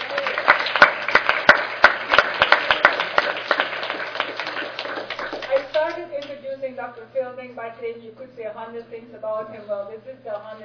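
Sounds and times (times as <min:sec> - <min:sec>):
audience applause: 0:00.0 - 0:06.0
speech: 0:06.8 - 0:10.6.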